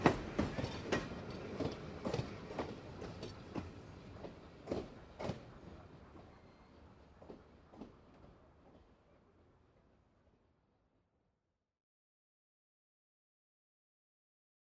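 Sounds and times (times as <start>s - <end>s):
steam locomotive on a railway: 0.0s - 10.3s.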